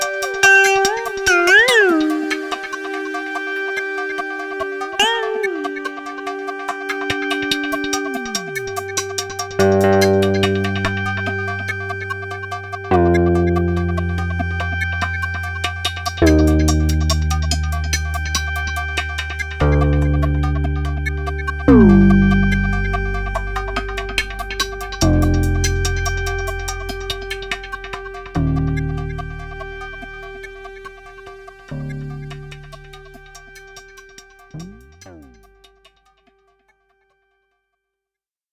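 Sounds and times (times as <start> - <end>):
synthesizer mix: 0.0 - 35.7.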